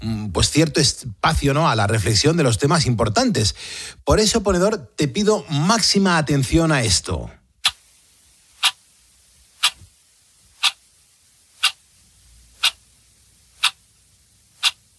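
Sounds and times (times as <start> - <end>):
speech: 0.3 - 7.4
clock ticking: 10.6 - 10.8, 11.6 - 11.8, 12.6 - 12.8, 13.6 - 13.8, 14.6 - 14.8.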